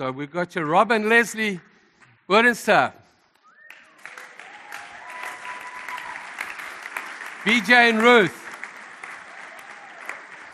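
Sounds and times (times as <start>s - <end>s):
speech: 0.0s - 3.0s, 7.4s - 8.4s
faint tonal whistle-like sound: 3.4s - 4.0s
audience applause from a sizable crowd: 3.6s - 10.5s.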